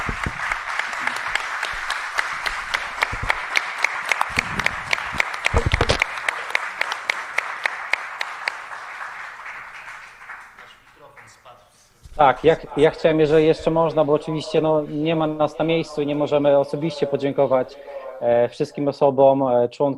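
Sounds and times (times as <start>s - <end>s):
audience applause: 0.0s - 11.4s
speech: 12.2s - 19.9s.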